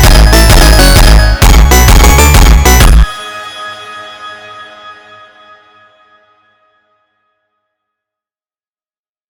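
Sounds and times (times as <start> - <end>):
Brazilian phonk music: 0.0 - 3.3.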